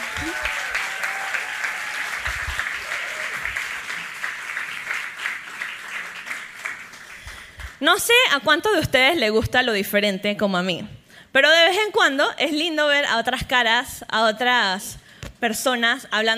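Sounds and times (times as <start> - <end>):
audience applause: 0.0 - 7.8
speech: 7.8 - 16.3.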